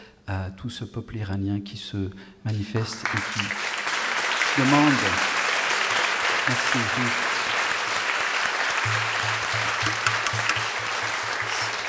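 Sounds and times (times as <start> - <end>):
speech: 0.3 - 3.8, 4.6 - 5.3, 6.4 - 7.3, 8.8 - 11.8
crowd applause: 2.9 - 11.8
low rhythmic pulse thumping: 8.8 - 11.6.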